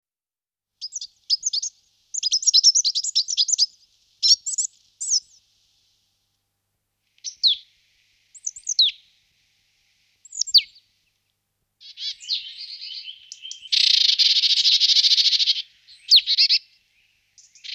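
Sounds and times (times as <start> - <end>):
Marsh tit calls of rapid high chirps: 0.8 - 5.4, 7.2 - 7.6, 8.4 - 9.0, 10.2 - 10.8, 11.8 - 17.7.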